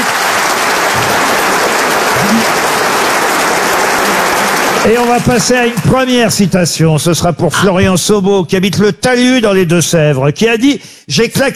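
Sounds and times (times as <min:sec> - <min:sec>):
audience applause: 0:00.0 - 0:06.8
speech: 0:04.8 - 0:11.5.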